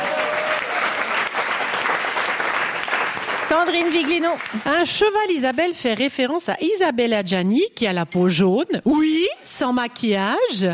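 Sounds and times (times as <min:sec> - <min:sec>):
audience applause: 0:00.0 - 0:04.8
speech: 0:03.5 - 0:10.7.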